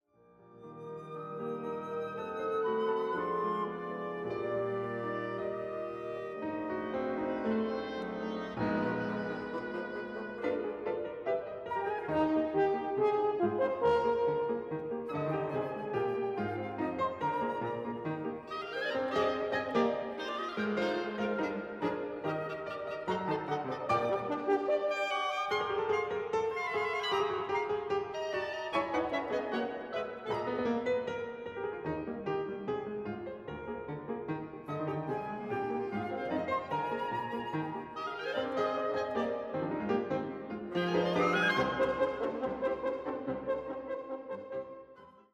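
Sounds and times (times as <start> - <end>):
piano: 0.1 - 45.3.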